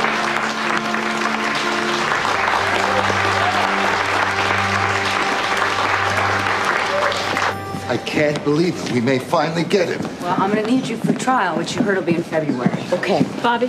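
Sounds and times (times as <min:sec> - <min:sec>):
courtroom applause: 0:00.0 - 0:08.1
speech: 0:07.9 - 0:13.6.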